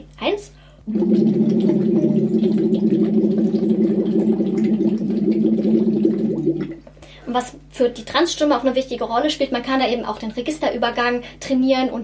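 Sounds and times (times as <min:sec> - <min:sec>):
speech: 0:00.2 - 0:03.7, 0:07.3 - 0:12.0
voiced oo hummed through a tube into water: 0:00.9 - 0:06.8.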